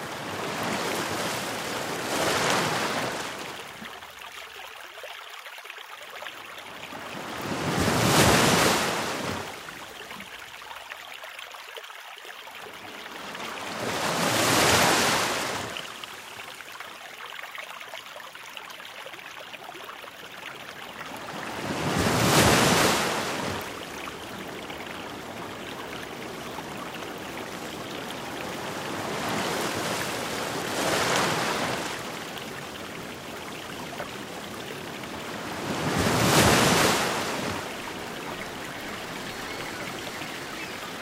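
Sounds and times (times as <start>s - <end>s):
ocean waves: 0.0s - 3.9s, 6.6s - 10.2s, 12.7s - 16.4s, 20.6s - 40.9s.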